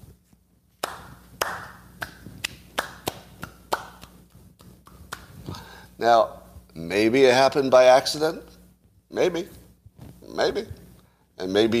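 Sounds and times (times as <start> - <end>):
slow clap: 0.8 - 5.5
speech: 6.0 - 8.5, 9.1 - 9.6, 10.4 - 10.8, 11.4 - 11.7.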